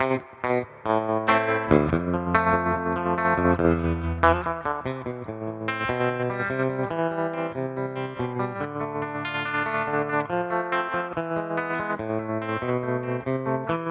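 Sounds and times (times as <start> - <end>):
Telecaster electric guitar with tremolo through 6V6 Princeton amplifier: 0.0 - 13.8.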